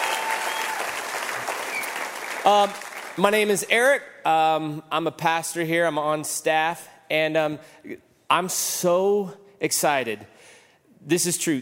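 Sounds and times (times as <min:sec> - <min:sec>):
church congregation clapping: 0:00.0 - 0:03.3
speech: 0:02.5 - 0:11.6.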